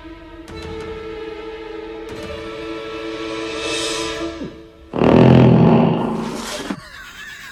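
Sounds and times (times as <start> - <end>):
voice imitating a fart: 5.0 - 6.8.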